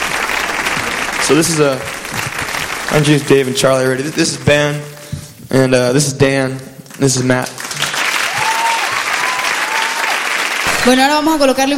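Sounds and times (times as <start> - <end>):
live audience applause greeting a band: 0.0 - 4.9, 6.8 - 11.0
speech: 1.2 - 2.3, 2.9 - 4.9, 5.5 - 7.6, 10.8 - 11.7.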